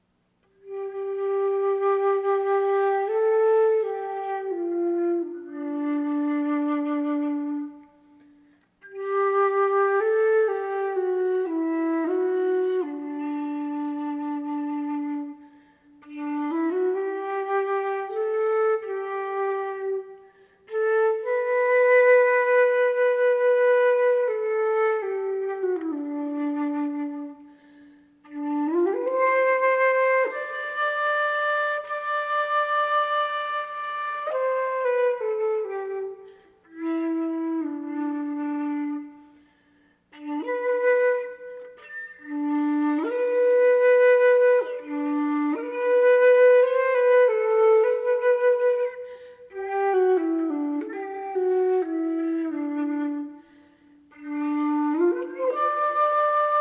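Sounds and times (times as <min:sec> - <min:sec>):
flute: 0:00.0 - 0:56.5.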